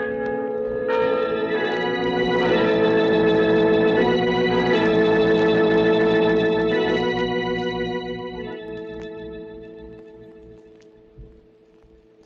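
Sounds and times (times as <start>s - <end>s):
bells ringing: 0.0s - 10.3s.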